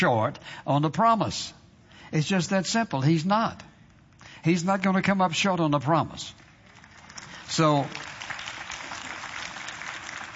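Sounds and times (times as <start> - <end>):
speech: 0.0 - 3.7, 4.4 - 6.4, 7.5 - 8.1
sparse clapping from a church congregation: 6.4 - 10.3.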